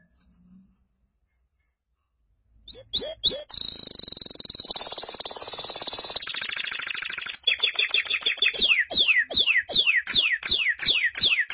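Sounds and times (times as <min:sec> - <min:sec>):
canary song: 0:02.7 - 0:11.5.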